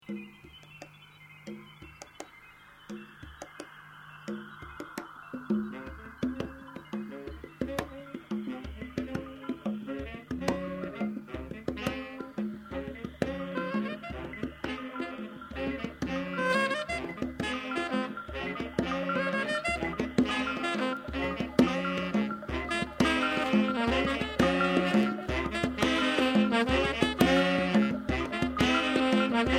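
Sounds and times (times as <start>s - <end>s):
fanfare: 5.7s - 29.5s.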